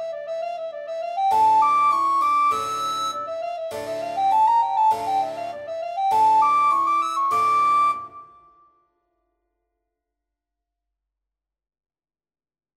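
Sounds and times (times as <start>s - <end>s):
recorder playing a tambourin suite in E minor: 0.0s - 8.4s.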